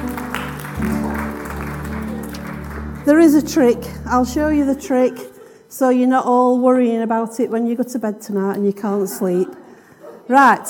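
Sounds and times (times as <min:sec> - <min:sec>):
audience applause for volunteers after a trick demonstration: 0:00.0 - 0:03.6
speech: 0:03.1 - 0:09.6, 0:10.3 - 0:10.6.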